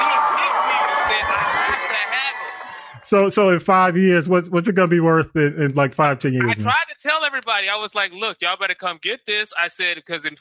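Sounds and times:
many overlapping voices whooping: 0:00.0 - 0:03.5
audience cheering and applause: 0:00.0 - 0:03.6
laughter: 0:00.0 - 0:06.7
speech: 0:03.1 - 0:10.4.

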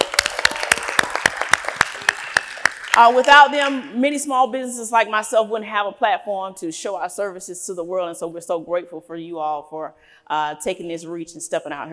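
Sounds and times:
scattered clapping from a small audience at a freight business festival: 0:00.0 - 0:03.8
speech: 0:03.0 - 0:11.9.

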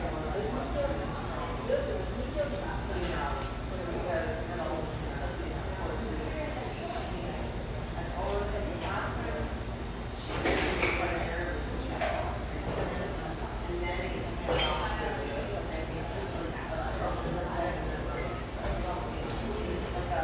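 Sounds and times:
overlapping café voices and chatter: 0:00.0 - 0:20.2
clinks and clatters of dishes: 0:14.4 - 0:15.2.

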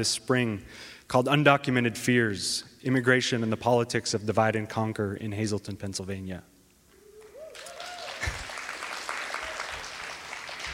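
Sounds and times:
speech: 0:00.0 - 0:06.5
audience applause: 0:07.5 - 0:10.7.

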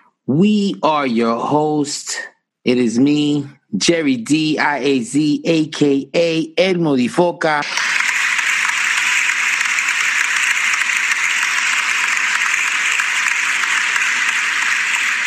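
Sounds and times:
speech: 0:00.3 - 0:07.9
crowd clapping: 0:07.6 - 0:15.2.

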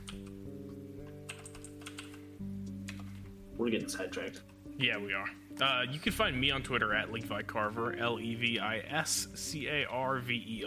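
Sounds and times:
typing on a computer keyboard: 0:00.0 - 0:00.4, 0:01.0 - 0:03.2
speech: 0:03.6 - 0:10.6.

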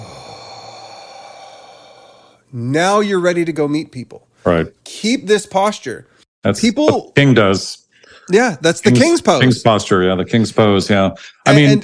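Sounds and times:
slow exhale after a deep breath during a breathing exercise: 0:00.0 - 0:02.5
speech: 0:02.5 - 0:11.8.

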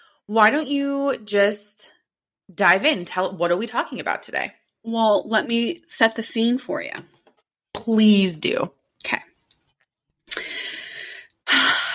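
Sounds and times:
speech: 0:00.3 - 0:07.1, 0:07.8 - 0:09.3
deep breath taken before speaking: 0:10.3 - 0:11.9.

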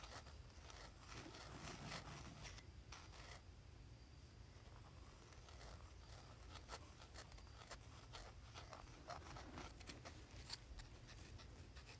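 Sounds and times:
pencil scratching on cardboard: 0:00.0 - 0:03.4, 0:04.6 - 0:11.9.

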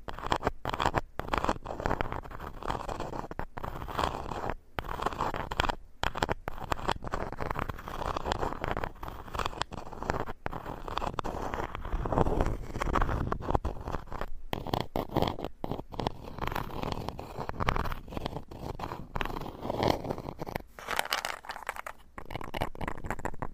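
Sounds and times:
wood scraping: 0:00.1 - 0:23.4.

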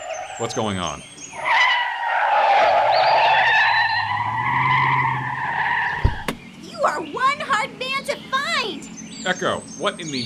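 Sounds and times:
car tires screeching while skidding: 0:00.0 - 0:08.7
car engine roaring: 0:00.0 - 0:09.8
speech: 0:00.4 - 0:01.2, 0:09.2 - 0:10.2.

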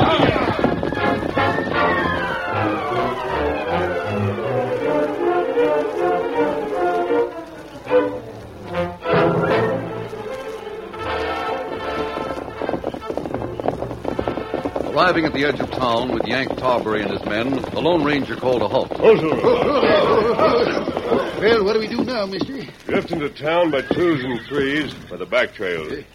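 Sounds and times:
horses galloping hard on a trail: 0:00.0 - 0:26.1
loud dramatic orchestral music: 0:00.1 - 0:14.9
speech: 0:15.2 - 0:26.1
laughter: 0:19.1 - 0:22.0.

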